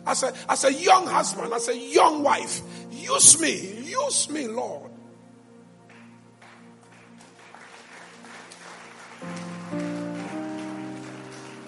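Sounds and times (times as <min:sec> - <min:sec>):
sustained keyboard chords: 0:00.0 - 0:11.6
speech: 0:00.1 - 0:05.0
audience clapping: 0:05.8 - 0:11.6.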